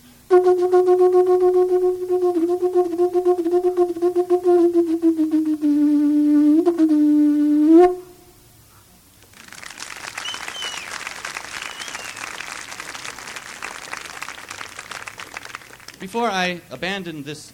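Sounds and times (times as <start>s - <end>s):
speech: 0.4s - 7.0s, 7.8s - 8.0s, 16.1s - 17.5s
audience applause: 9.2s - 16.1s.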